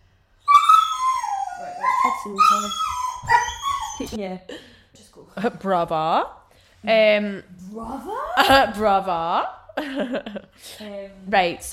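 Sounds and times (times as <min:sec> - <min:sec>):
dog barking and howling at a cat: 0:00.4 - 0:04.2
speech: 0:02.2 - 0:03.4, 0:04.0 - 0:11.7.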